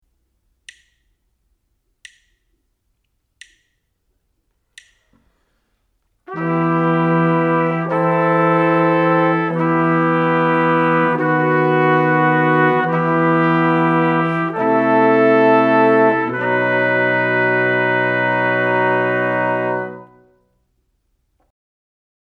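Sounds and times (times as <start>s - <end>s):
brass quartet: 6.3s - 20.5s.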